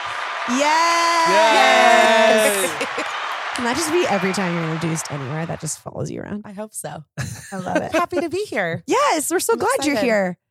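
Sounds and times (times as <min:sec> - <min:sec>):
applause and cheering sound effect button: 0:00.0 - 0:05.9
speech: 0:00.5 - 0:02.0, 0:03.6 - 0:10.4
laughter: 0:01.3 - 0:04.3, 0:07.2 - 0:08.4.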